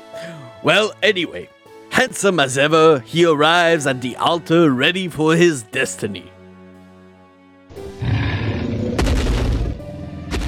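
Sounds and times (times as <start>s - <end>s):
speech: 0.2s - 6.3s
monstrous dragon roaring: 7.8s - 10.3s.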